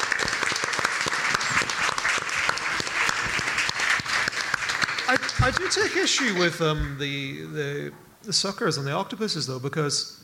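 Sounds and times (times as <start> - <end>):
audience applause: 0.0 - 6.9
speech: 5.1 - 10.2.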